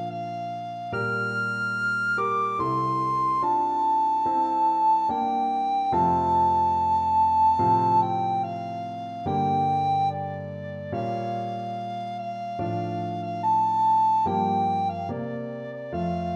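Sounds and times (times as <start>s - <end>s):
recorder playing: 0.0s - 10.2s, 11.2s - 15.1s.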